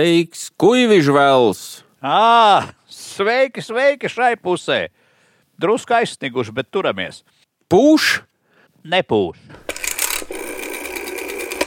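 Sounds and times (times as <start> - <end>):
speech: 0.0 - 5.0, 5.6 - 9.6
ringing tone of an outgoing telephone call: 9.7 - 11.6.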